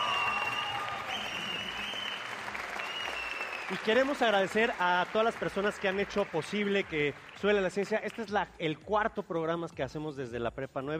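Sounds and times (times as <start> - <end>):
audience applause: 0.0 - 7.6
speech: 3.7 - 10.9.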